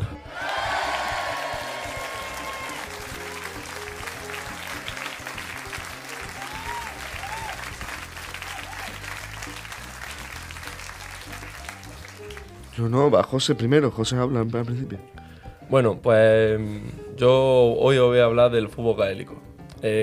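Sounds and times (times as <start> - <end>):
applause: 0.4 - 12.8
speech: 12.8 - 20.0.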